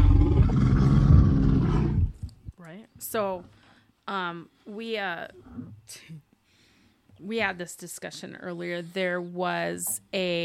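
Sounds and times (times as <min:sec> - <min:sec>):
angry bear roar sound effect from the film Cocaine Bear: 0:00.0 - 0:02.3
speech: 0:03.1 - 0:06.3, 0:07.2 - 0:10.4.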